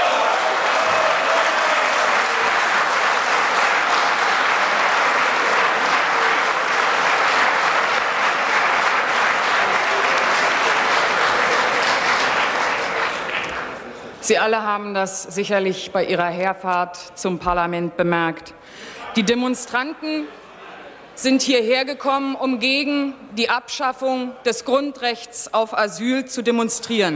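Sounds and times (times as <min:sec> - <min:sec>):
large crowd applause: 0:00.0 - 0:14.2
speech: 0:14.3 - 0:20.4, 0:21.2 - 0:27.1.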